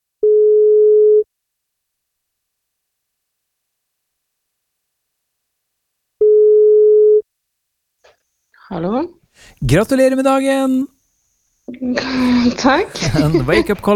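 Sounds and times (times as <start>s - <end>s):
telephone ringback tone while calling: 0.2s - 1.2s, 6.2s - 7.2s
speech: 8.7s - 10.9s, 11.7s - 13.9s
laughter: 11.9s - 13.9s.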